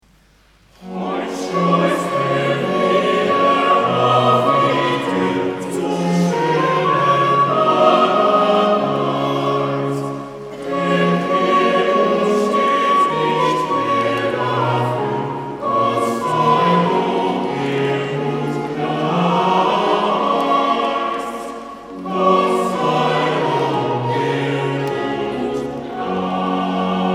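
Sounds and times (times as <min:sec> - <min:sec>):
choir singing: 0:00.8 - 0:27.1.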